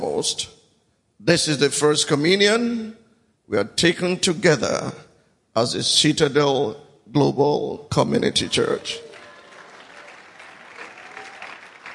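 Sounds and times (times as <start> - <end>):
speech: 0.1 - 0.6, 1.2 - 9.0
audience clapping: 8.5 - 11.9.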